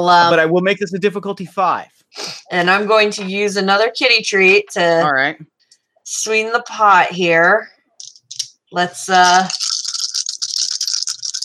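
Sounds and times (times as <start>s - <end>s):
speech: 0.0s - 5.5s, 6.1s - 7.7s, 8.7s - 9.6s
dice being rolled: 8.0s - 11.4s.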